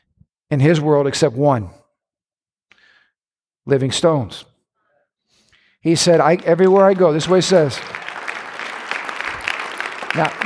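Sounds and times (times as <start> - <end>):
speech: 0.5 - 1.8, 3.7 - 4.5, 5.8 - 8.0, 10.1 - 10.4
audience clapping: 5.9 - 10.4.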